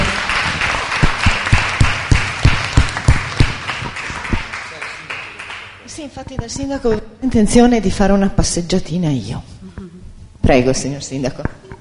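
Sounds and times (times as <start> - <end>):
audience applause: 0.0 - 5.8
louder rhythmic claps: 0.0 - 7.6
speech: 6.0 - 9.6, 10.5 - 11.6.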